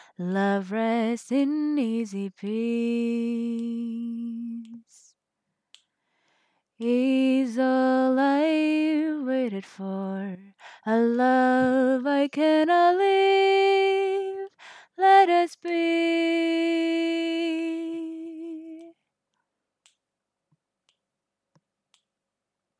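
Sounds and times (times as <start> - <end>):
person singing a cover: 0.0 - 5.1, 6.8 - 19.0.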